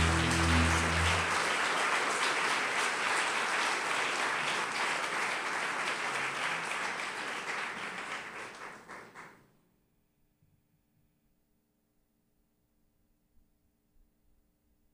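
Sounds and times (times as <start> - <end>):
low sustained tone: 0.0 - 1.4
audience applauding: 0.0 - 9.4.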